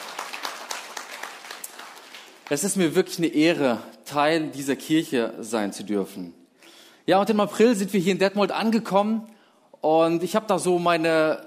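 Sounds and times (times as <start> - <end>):
audience applause: 0.0 - 2.7
speech: 2.5 - 6.4, 7.1 - 11.4.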